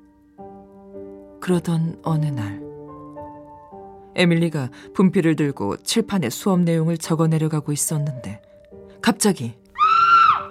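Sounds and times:
speech: 1.5s - 2.6s, 4.2s - 9.6s
children screaming: 9.8s - 10.4s.

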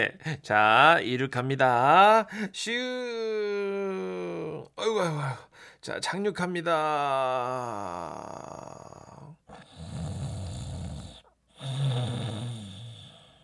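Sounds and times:
speech: 0.0s - 3.5s, 4.7s - 8.9s
person imitating snoring: 7.5s - 13.4s.

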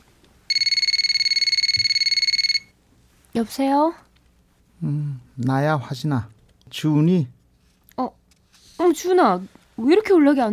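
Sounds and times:
telephone ringing: 0.5s - 2.8s
speech: 3.4s - 4.0s, 4.8s - 7.4s, 8.0s - 8.2s, 8.8s - 10.5s.

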